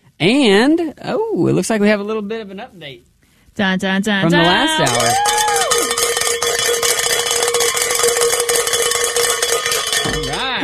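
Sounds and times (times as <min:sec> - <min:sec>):
speech: 0:00.2 - 0:05.5
bell ringing for a pledge goal: 0:04.3 - 0:10.6.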